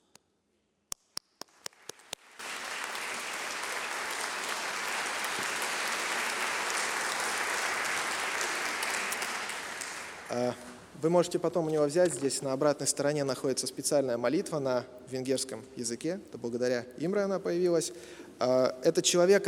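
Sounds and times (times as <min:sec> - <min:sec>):
audience applause: 0:01.6 - 0:10.7
speech: 0:10.3 - 0:19.4.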